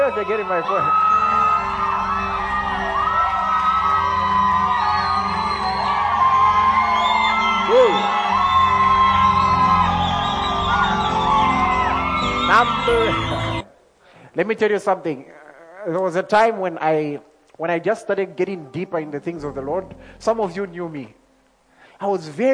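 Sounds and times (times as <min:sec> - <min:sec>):
audience shouting and cheering: 0:00.0 - 0:13.7
speech: 0:00.1 - 0:01.4, 0:12.6 - 0:13.2, 0:14.4 - 0:21.2, 0:22.0 - 0:22.5.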